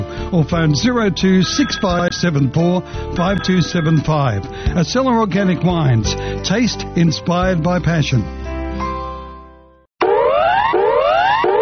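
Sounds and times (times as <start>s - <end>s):
speech: 0.3s - 8.4s
bushfire alert siren: 10.0s - 11.6s.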